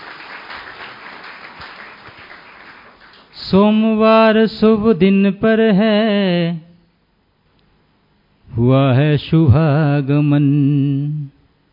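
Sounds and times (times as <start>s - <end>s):
loud applause: 0.0s - 3.4s
speech: 3.4s - 6.6s, 8.6s - 11.3s.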